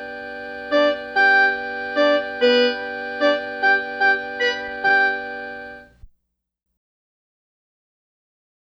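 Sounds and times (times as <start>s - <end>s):
repeated notes: 0.0s - 6.0s.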